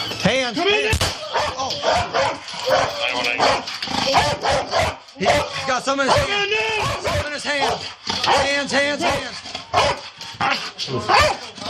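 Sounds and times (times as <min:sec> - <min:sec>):
voices: 0:00.0 - 0:11.6
police dog barking during a police deployment: 0:01.3 - 0:11.5
speech: 0:01.9 - 0:11.6.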